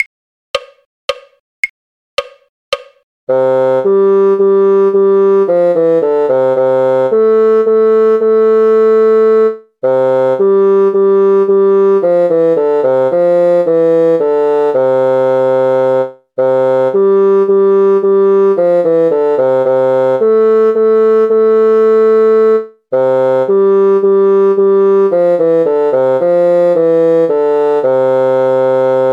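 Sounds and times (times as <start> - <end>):
bassoon: 3.3 - 29.1.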